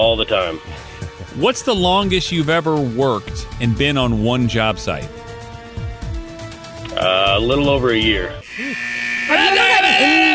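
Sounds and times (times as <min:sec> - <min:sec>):
speech: 0:00.0 - 0:05.2, 0:07.0 - 0:10.2
timer going off: 0:08.4 - 0:10.3.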